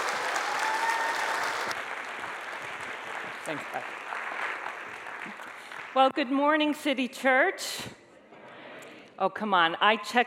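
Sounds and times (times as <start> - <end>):
audience applause welcoming a speaker at a church service: 0.0 - 6.0
speech: 3.5 - 4.1, 5.2 - 7.9, 9.2 - 10.2.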